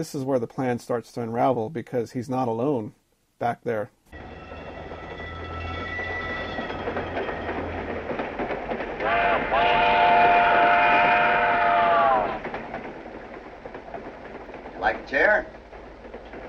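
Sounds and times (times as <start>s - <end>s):
speech: 0.0s - 4.4s
moving passenger train rumbling and rattling: 4.1s - 16.4s
loud multi-tone train whistle: 4.2s - 7.9s, 9.0s - 12.5s.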